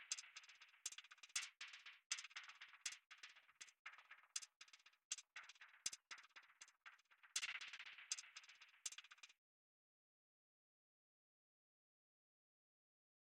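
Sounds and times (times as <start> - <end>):
percussion: 0.0 - 9.4.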